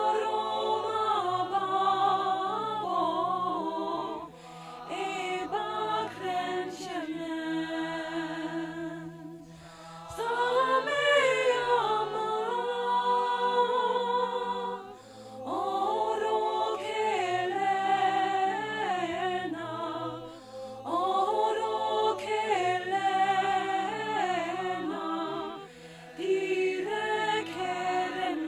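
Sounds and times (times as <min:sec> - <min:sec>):
soprano singing: 0:00.0 - 0:09.3, 0:10.1 - 0:28.4.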